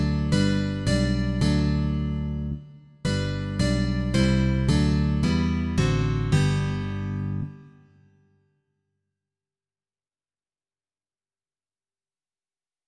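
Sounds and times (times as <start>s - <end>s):
bass guitar: 0.0s - 7.7s.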